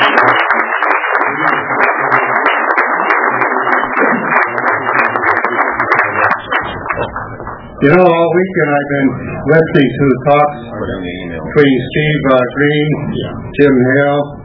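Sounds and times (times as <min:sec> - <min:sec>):
audience applause: 0:00.0 - 0:07.8
speech: 0:07.8 - 0:14.4.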